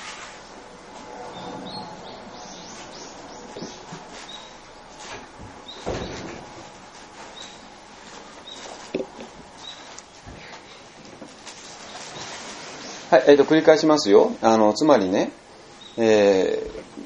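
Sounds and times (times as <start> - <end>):
doors closing at the entrance and in this room: 0.0 - 6.8
speech: 13.1 - 15.4, 16.0 - 16.8.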